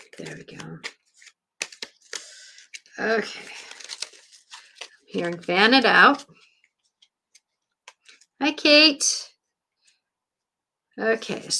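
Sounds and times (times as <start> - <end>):
thick oracle cards being shuffled by hand: 0.0 - 8.4
speech: 0.1 - 1.0, 3.0 - 3.6, 5.1 - 6.5, 8.4 - 9.3, 11.0 - 11.5.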